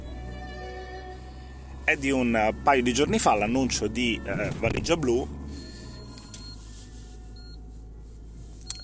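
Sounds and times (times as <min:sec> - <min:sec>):
speech: 0:01.9 - 0:05.6
car seatbelt warning alarm beeping: 0:01.9 - 0:07.7, 0:08.6 - 0:08.8.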